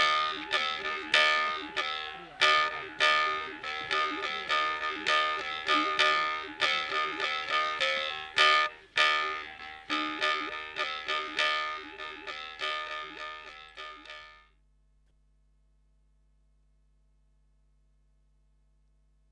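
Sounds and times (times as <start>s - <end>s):
Vietnamese dao vibrating fork solo: 0.0s - 14.5s.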